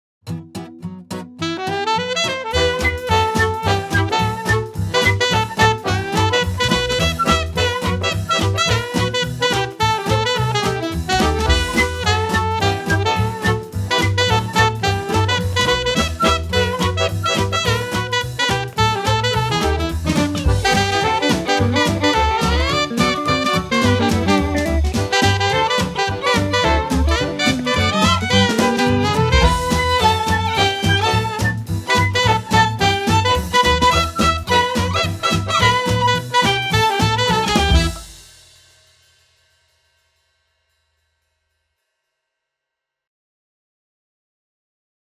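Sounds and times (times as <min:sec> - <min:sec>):
exam music piece: 0:01.4 - 0:38.3.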